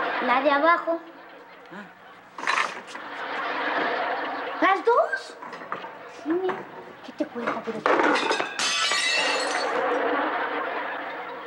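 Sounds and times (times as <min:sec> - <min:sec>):
laughter: 0:00.0 - 0:06.3, 0:09.3 - 0:11.4
speech: 0:00.2 - 0:02.0, 0:04.7 - 0:05.5, 0:06.2 - 0:10.4
dishes shattering on the floor: 0:07.8 - 0:10.0.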